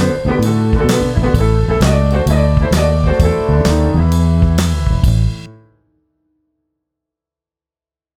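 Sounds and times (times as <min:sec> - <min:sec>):
blues music: 0:00.0 - 0:05.6.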